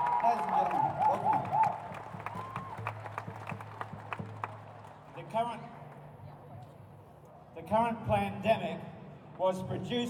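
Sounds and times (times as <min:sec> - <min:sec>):
voices and cheers: 0:00.0 - 0:03.2
rally crowd applause: 0:00.0 - 0:05.0
speech: 0:05.4 - 0:05.7, 0:07.7 - 0:10.0.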